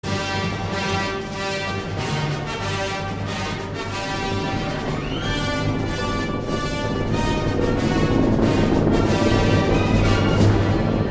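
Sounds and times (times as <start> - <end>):
alarming music: 0.0 - 11.0.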